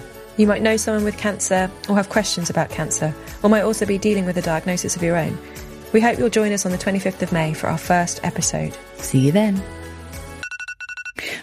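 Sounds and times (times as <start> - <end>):
speech: 0.4 - 9.8
phone alarm going off: 10.4 - 11.4.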